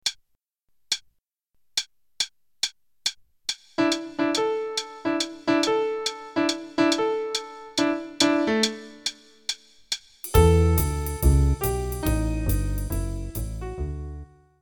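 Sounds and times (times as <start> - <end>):
jazz piano intro: 3.8 - 9.0, 10.3 - 14.6.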